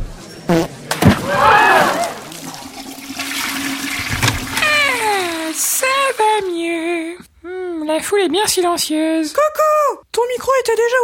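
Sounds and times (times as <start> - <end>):
toilet flushing: 1.0 - 6.8
toilet tank refilling hiss: 2.1 - 6.5
speech: 8.0 - 11.0.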